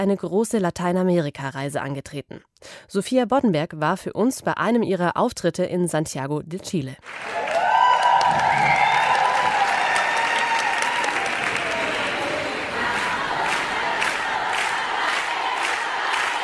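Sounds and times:
speech: 0:00.0 - 0:07.5, 0:08.3 - 0:08.8
thousands of women cheering and applauding Silvia Federici in Santiago de Chile: 0:07.0 - 0:16.4
high whoop: 0:07.2 - 0:12.5.

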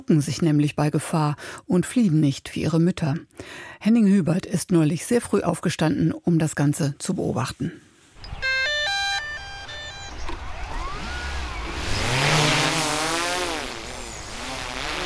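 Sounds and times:
speech: 0:00.0 - 0:07.9
drone buzzing over a field: 0:08.2 - 0:15.0.

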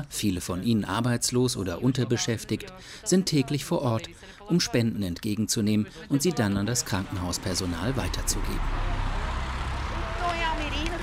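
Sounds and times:
speech: 0:00.0 - 0:09.0
car pulling up and stopping at the roadside: 0:06.4 - 0:11.0.

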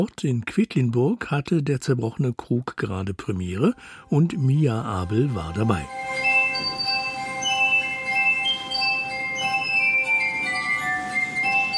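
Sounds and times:
speech: 0:00.0 - 0:06.0
glass music from a stage production: 0:03.7 - 0:11.7.

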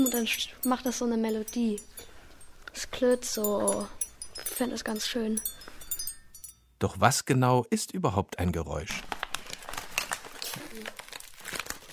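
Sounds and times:
speech: 0:00.0 - 0:02.1, 0:02.8 - 0:05.6, 0:06.8 - 0:09.2
foil-plastic candy bag full of sweets crunched: 0:08.9 - 0:11.9.

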